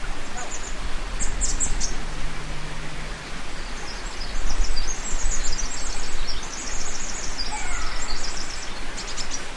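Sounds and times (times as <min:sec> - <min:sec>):
Pacific Wren song in San Pedro Valley, San Mateo: 0:00.1 - 0:02.1, 0:03.1 - 0:09.5.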